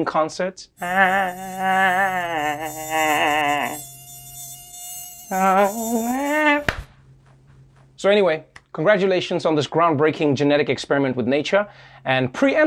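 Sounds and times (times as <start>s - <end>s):
speech: 0.0s - 3.9s, 5.3s - 6.7s, 8.0s - 12.6s
mosquito buzzing near ear: 0.8s - 6.9s.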